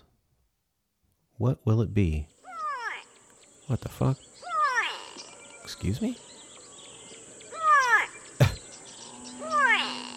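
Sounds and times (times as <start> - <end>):
speech: 1.4 - 2.3, 3.7 - 4.6, 5.7 - 6.3
gray go-away bird wailing calls: 2.4 - 10.1.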